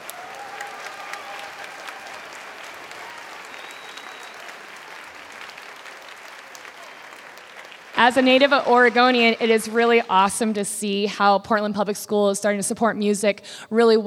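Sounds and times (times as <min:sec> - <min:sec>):
faint whistles or cheers: 0:00.0 - 0:08.5
audience applause: 0:00.0 - 0:11.0
speech: 0:08.0 - 0:14.0.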